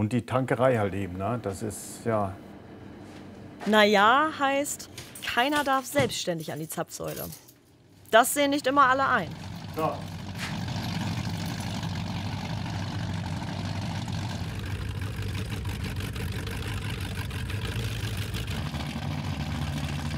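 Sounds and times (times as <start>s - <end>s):
speech: 0.0s - 2.5s, 3.6s - 7.4s, 8.1s - 10.2s
powerboat engine idling: 8.7s - 20.1s.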